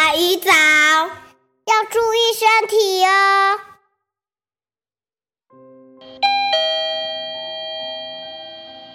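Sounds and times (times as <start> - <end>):
speech: 0.1 - 3.7
elevator door opening chime: 6.0 - 8.9.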